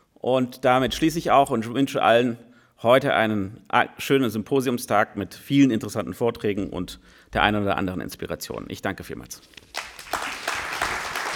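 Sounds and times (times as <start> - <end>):
speech: 0.2 - 9.6
audience applause: 9.7 - 11.3.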